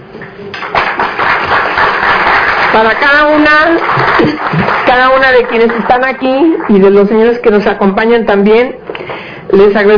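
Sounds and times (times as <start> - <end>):
audience applauding at the start of an event: 0.2 - 7.4
speech: 2.8 - 9.9.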